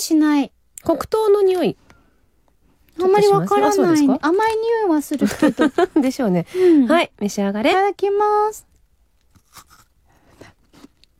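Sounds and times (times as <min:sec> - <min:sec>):
speech: 0:00.1 - 0:01.8, 0:03.0 - 0:08.7
crunchy bites into brown sugar ice cream and shaved ice: 0:09.3 - 0:09.9.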